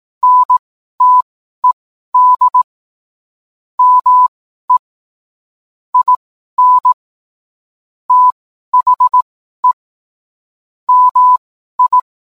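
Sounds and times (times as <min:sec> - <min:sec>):
morse code beeps: 0:00.2 - 0:02.7, 0:03.8 - 0:04.8, 0:06.0 - 0:07.0, 0:08.1 - 0:09.8, 0:10.9 - 0:12.0.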